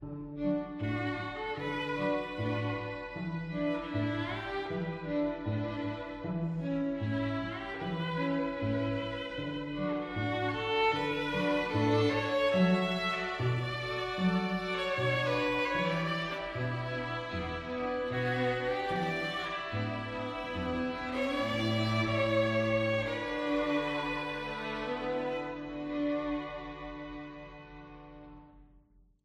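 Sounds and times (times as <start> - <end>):
string quartet: 0.0 - 28.6.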